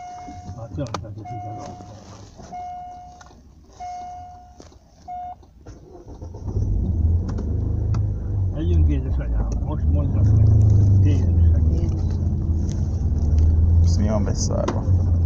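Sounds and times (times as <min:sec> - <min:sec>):
steady high-pitched tonal beeps: 0:00.0 - 0:03.2, 0:03.8 - 0:05.4
car engine approaching: 0:00.0 - 0:15.2
speech: 0:00.8 - 0:02.8, 0:14.2 - 0:14.9.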